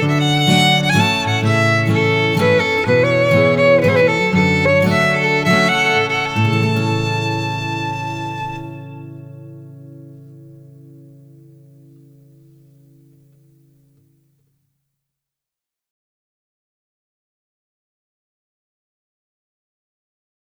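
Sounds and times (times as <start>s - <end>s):
waltz tune field recording: 0.0s - 10.3s.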